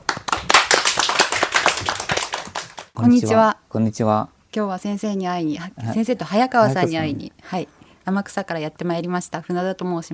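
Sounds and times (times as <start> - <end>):
audience applause: 0.0 - 3.0
speech: 3.0 - 10.1.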